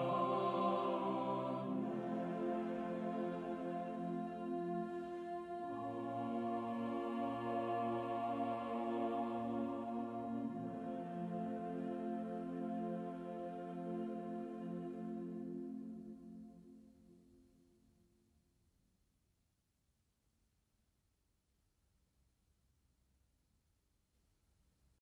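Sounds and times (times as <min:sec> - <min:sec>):
singers singing a hymn: 0:00.0 - 0:16.5.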